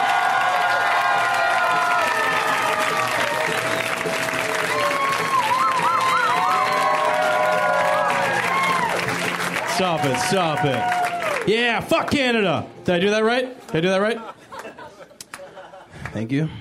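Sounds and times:
comedy show audience applause: 0.0 - 12.1
speech: 9.8 - 14.4, 16.2 - 16.5
laughter: 14.0 - 16.1.

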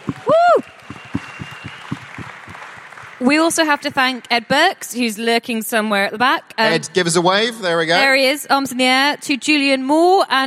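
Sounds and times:
audience applause: 0.0 - 3.9
speech: 3.2 - 10.4.

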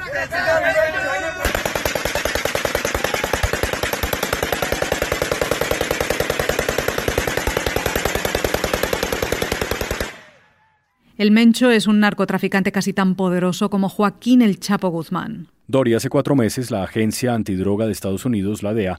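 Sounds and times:
speech: 0.1 - 1.3, 11.2 - 18.9
automatic rifle gunfire into the air by masked Jalisco cartel gunmen: 1.4 - 10.4.

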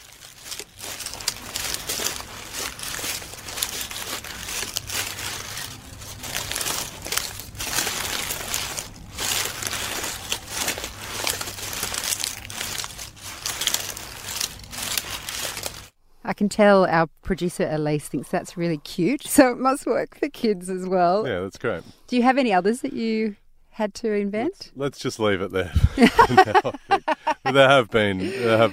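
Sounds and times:
foley wombat movement with hands, canvas bag and leaves: 0.0 - 15.9
speech: 16.4 - 28.7
laughter: 25.6 - 28.7.

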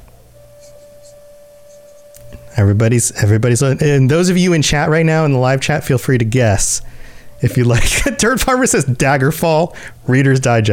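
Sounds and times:
handwriting an answer: 0.5 - 2.4
speech: 2.2 - 10.7.

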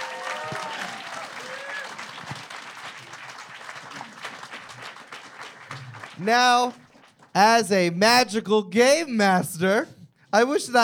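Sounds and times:
audience applause: 0.0 - 7.3
speech: 6.2 - 6.8, 7.4 - 10.8.

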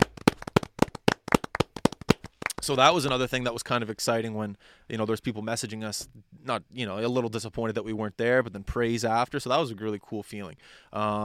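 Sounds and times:
round of applause: 0.0 - 2.8
speech: 2.6 - 11.2.

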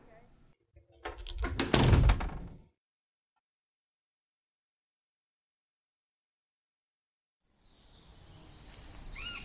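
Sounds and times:
door being closed: 0.8 - 2.7.

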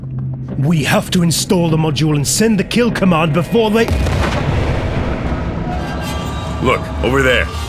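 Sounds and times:
speech: 0.5 - 4.4, 6.6 - 7.6
missile explosion destroying a tower: 3.8 - 6.6.

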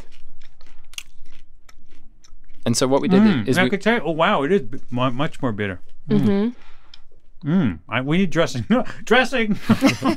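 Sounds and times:
chewing raw massaged kale: 0.0 - 3.1
speech: 2.7 - 6.7, 7.4 - 10.1
laughter: 9.5 - 10.1.

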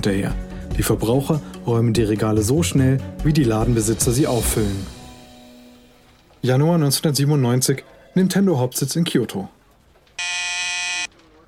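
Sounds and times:
speech: 0.0 - 5.0, 6.4 - 9.6
office intercom buzz: 10.2 - 11.1.

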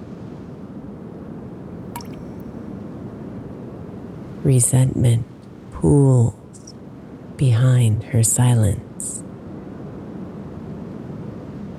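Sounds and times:
raindrops dripping: 2.0 - 2.4
speech: 4.4 - 6.4, 7.4 - 8.9.

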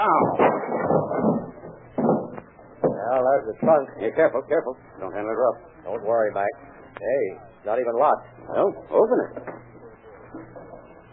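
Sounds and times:
door being broken down: 0.0 - 3.8
speech: 0.1 - 0.5, 3.4 - 9.5.

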